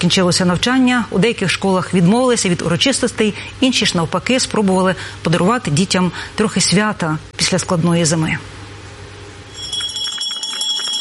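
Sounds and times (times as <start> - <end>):
speech: 0.0 - 8.6
school bell ringing for last day: 9.5 - 10.9.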